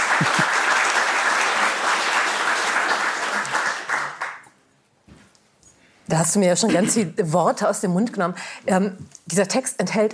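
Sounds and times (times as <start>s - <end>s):
audience applause: 0.0s - 4.5s
speech: 6.1s - 10.1s.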